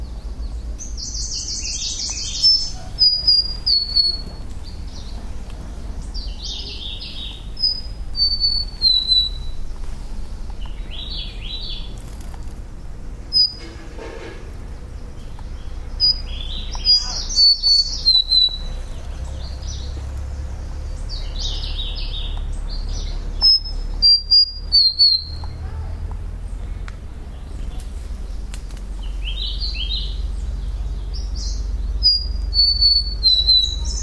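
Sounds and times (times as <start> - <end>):
Large-billed leaf warbler Phylloscopus magnirostris song: 0.0 - 25.8, 26.4 - 34.0.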